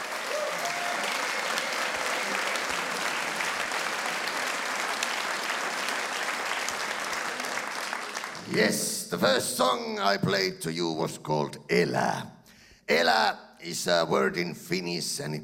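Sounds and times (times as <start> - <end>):
audience applause: 0.0 - 9.0
speech: 8.5 - 15.4.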